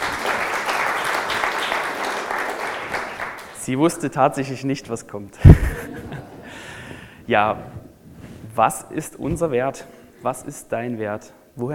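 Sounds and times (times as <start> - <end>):
audience applause: 0.0 - 3.6
speech: 3.7 - 5.9, 7.3 - 7.8, 8.6 - 11.7
laughter: 5.4 - 6.5.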